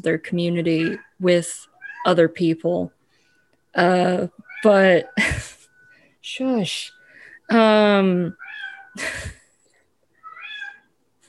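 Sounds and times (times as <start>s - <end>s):
speech: 0.0s - 3.0s, 3.7s - 5.6s, 6.2s - 8.4s, 9.0s - 9.4s
tortoiseshell cat meowing: 0.8s - 2.1s, 8.3s - 9.0s, 10.2s - 10.9s.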